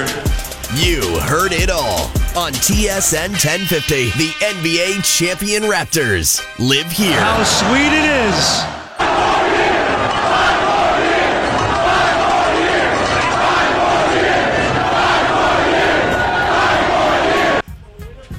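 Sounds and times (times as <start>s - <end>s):
speech: 0.1s - 8.8s
fans chanting five more years: 7.0s - 17.6s.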